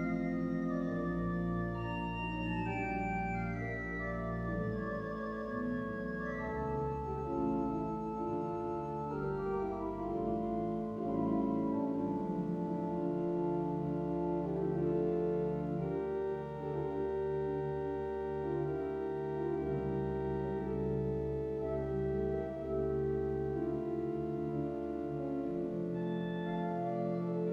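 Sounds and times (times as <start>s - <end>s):
pipe organ playing with nazard oboe and kopfregal stops: 0.0s - 27.5s.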